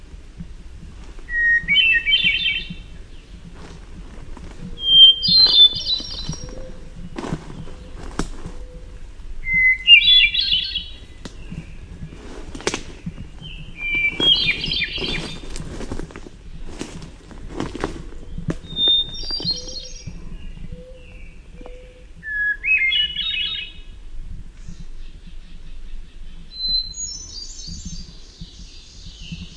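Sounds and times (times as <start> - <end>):
hermit thrush singing: 1.3 - 3.5, 4.6 - 17.0, 17.6 - 24.0, 24.6 - 29.5
clicks and rustling: 5.4 - 8.6, 11.2 - 20.2.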